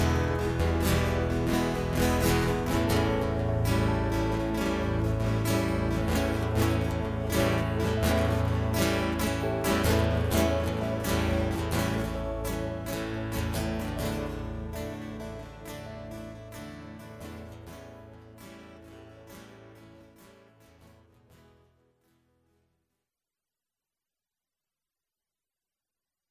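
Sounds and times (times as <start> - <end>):
instrumental intro: 0.0 - 18.3.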